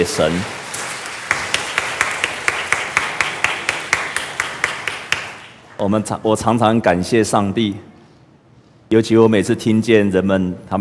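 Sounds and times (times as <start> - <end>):
speech: 0.0 - 0.6, 5.8 - 7.9, 8.9 - 10.7
audience applause: 0.0 - 5.6
crowd clapping in time: 0.0 - 5.8.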